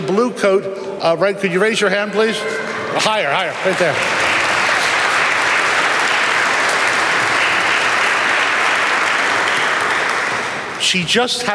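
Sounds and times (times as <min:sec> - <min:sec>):
speech: 0:00.1 - 0:04.2, 0:10.9 - 0:11.5
audience applauding: 0:02.9 - 0:11.1.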